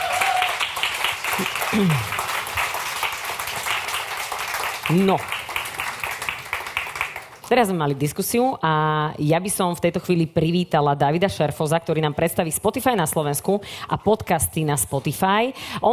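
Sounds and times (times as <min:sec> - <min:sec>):
audience applause: 0:00.0 - 0:07.5
speech: 0:01.4 - 0:02.2, 0:04.9 - 0:05.3, 0:07.5 - 0:15.9.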